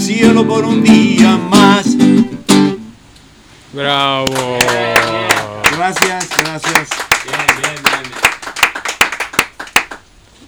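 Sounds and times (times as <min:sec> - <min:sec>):
speech: 0:00.1 - 0:01.5, 0:03.7 - 0:04.5
audience clapping: 0:03.9 - 0:10.1.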